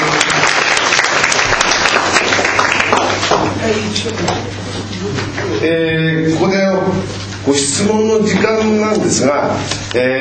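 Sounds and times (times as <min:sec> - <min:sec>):
audience applause: 0:00.0 - 0:03.6
speech: 0:04.0 - 0:10.1.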